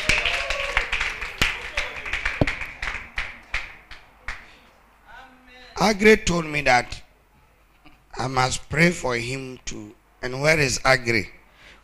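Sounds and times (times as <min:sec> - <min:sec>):
audience clapping: 0:00.0 - 0:04.7
speech: 0:05.8 - 0:07.0, 0:08.2 - 0:11.8.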